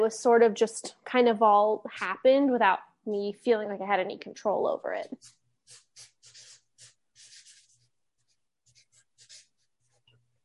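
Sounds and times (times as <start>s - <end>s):
speech: 0.0s - 5.8s
pen scratching across a board: 5.2s - 10.2s.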